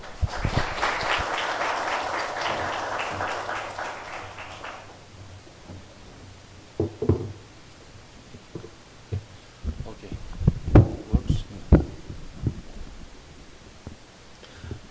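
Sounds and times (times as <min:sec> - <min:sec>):
audience applause: 0:00.0 - 0:05.0
thumps: 0:08.5 - 0:12.7.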